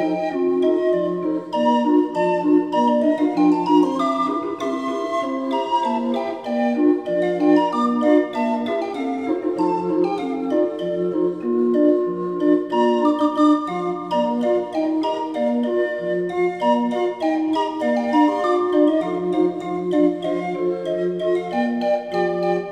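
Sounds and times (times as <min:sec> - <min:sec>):
20-note barrel organ: 0:00.0 - 0:22.7.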